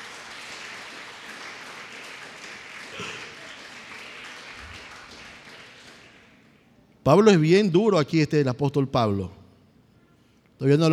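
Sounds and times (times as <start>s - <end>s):
audience applauding: 0.0s - 6.4s
speech: 7.1s - 9.4s, 10.6s - 10.9s.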